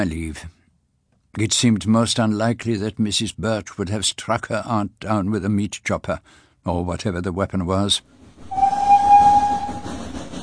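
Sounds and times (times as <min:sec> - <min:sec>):
speech: 0:00.0 - 0:00.6, 0:01.3 - 0:08.6
steam train rumbling with a low mechanical chug: 0:08.2 - 0:10.4
hissing steam: 0:08.5 - 0:10.4
steam train whistle: 0:08.5 - 0:10.4.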